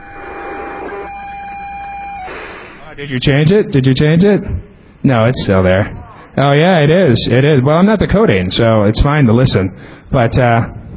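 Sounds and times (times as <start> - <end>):
radio scanner receiving common carrier traffic: 0.0 - 3.2
speech: 3.0 - 10.9.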